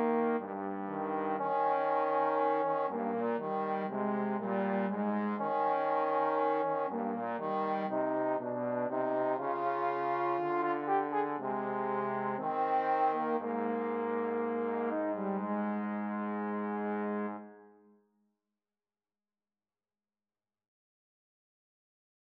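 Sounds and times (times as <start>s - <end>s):
trombone trio playing a romance: 0.0s - 17.5s.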